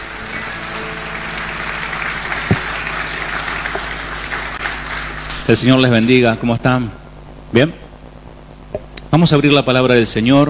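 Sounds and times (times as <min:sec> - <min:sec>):
audience applause: 0:00.0 - 0:06.4
speech: 0:05.5 - 0:07.8, 0:09.1 - 0:10.4.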